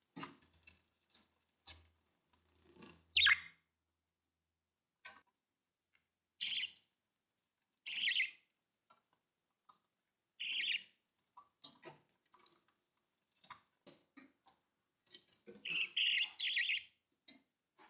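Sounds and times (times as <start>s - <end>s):
budgerigar calls: 7.9s - 8.3s, 10.4s - 10.8s, 15.7s - 16.8s.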